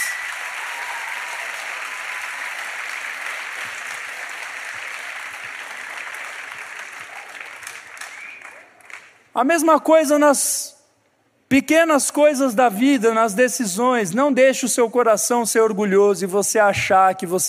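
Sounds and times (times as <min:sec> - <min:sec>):
applause: 0:00.0 - 0:09.3
speech: 0:09.4 - 0:10.8, 0:11.5 - 0:17.4.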